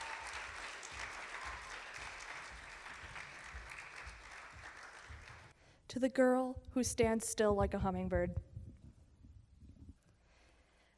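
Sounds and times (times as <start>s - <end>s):
audience applause: 0.0s - 5.5s
speech: 6.0s - 8.5s.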